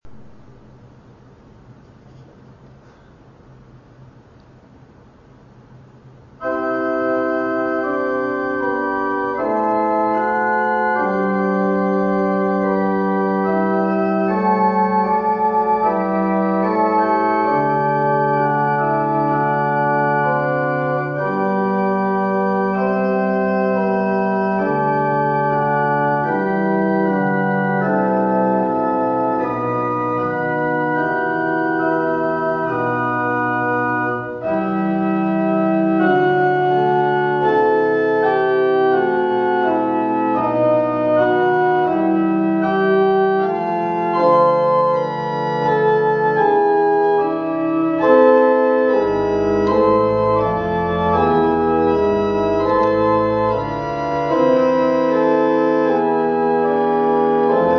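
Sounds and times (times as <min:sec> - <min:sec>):
organ: 0:06.3 - 0:57.7.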